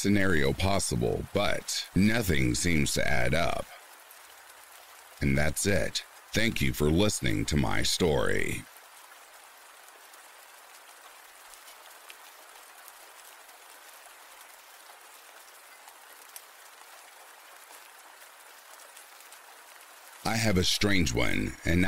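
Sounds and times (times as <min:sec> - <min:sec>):
speech: 0:00.0 - 0:03.8, 0:05.2 - 0:08.7, 0:20.3 - 0:21.8
steady rain falling: 0:00.0 - 0:21.8.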